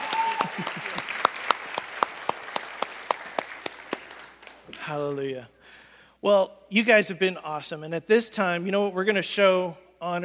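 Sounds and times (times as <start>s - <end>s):
audience applause: 0.0s - 4.8s
speech: 4.9s - 5.6s, 6.2s - 10.2s.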